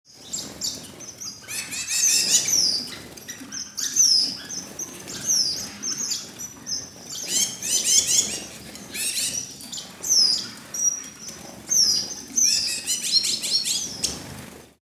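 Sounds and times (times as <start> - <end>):
birds: 0.1 - 14.8.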